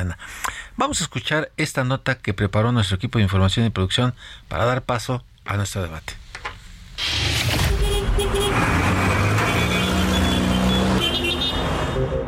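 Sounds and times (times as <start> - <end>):
speech: 0.0 - 6.2
Mexico City street traffic noise: 6.2 - 12.2.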